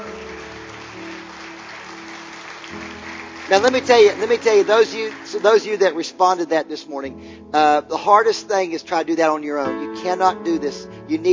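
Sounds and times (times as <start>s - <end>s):
audience clapping: 0.0s - 6.1s
speech: 3.5s - 11.3s.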